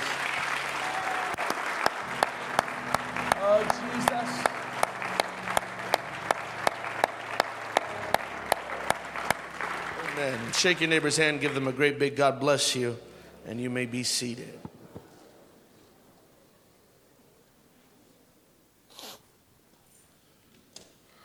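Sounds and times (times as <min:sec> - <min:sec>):
audience applauding in praise: 0:00.0 - 0:12.8
speech: 0:10.5 - 0:14.7.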